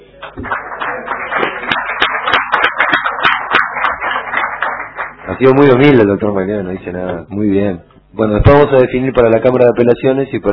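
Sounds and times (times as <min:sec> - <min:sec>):
group applauding: 0:00.0 - 0:06.0
speech: 0:00.2 - 0:01.4, 0:05.3 - 0:10.5.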